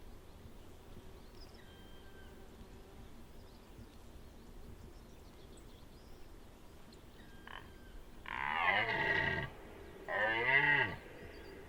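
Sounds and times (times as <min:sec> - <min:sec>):
deer calling with rich moaning calls: 0:07.2 - 0:11.1.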